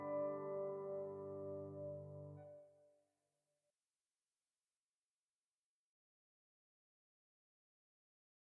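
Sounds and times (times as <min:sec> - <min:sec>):
piano music: 0:00.0 - 0:02.5.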